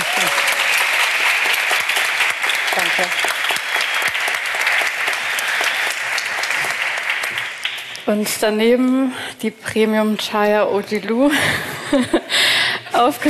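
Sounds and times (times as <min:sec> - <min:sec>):
audience applause: 0:00.0 - 0:08.1
speech: 0:03.0 - 0:03.4, 0:08.1 - 0:13.2.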